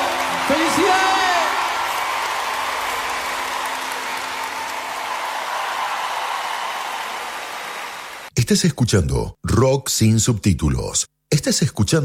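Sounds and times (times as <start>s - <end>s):
audience applause: 0.0s - 8.3s
speech: 8.5s - 12.0s.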